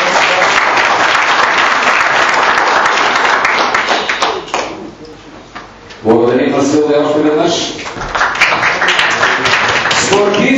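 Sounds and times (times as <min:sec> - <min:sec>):
audience applause: 0:00.0 - 0:04.8, 0:07.8 - 0:10.5
speech: 0:06.1 - 0:08.0, 0:10.1 - 0:10.5.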